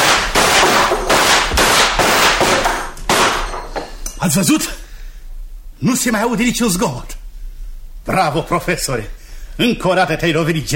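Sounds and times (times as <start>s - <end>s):
volley of gunfire: 0.0s - 3.4s
speech: 4.2s - 4.8s, 5.8s - 7.2s, 8.0s - 10.7s.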